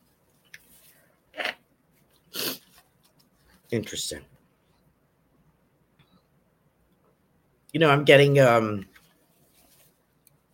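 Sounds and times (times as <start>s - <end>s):
person blowing nose: 2.3s - 2.8s
speech: 3.7s - 4.3s, 7.8s - 8.9s.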